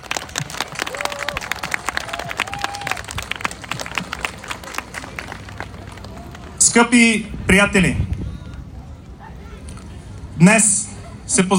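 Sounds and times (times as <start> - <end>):
crowd applauding: 0.0 - 6.8
speech: 6.7 - 8.1, 10.4 - 10.7, 11.4 - 11.5.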